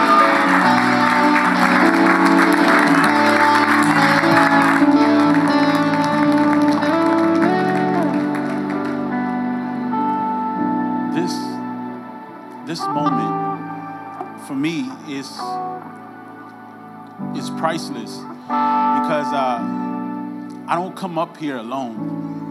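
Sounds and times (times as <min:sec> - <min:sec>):
audience clapping: 0:00.0 - 0:09.5
sustained keyboard or organ chords: 0:00.0 - 0:22.4
speech: 0:20.7 - 0:22.4.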